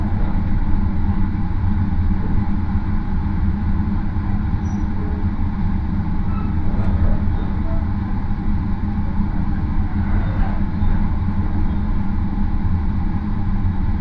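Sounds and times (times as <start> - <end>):
rapid Marine Liner train running rumble from Takamatsu to Okayama: 0.0 - 14.0
faint clicks and squeaks: 4.6 - 5.0, 6.3 - 7.9.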